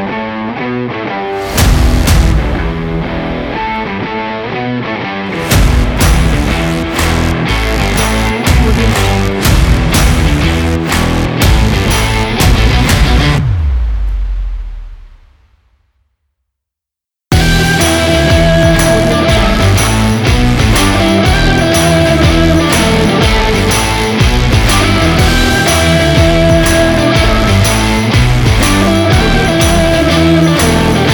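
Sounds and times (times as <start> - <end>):
sport promo rock music: 0.0 - 13.8, 17.3 - 31.1.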